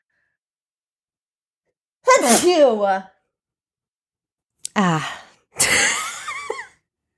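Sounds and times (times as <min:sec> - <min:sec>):
sneeze: 0:02.1 - 0:02.6
speech: 0:02.1 - 0:03.1, 0:04.8 - 0:06.0.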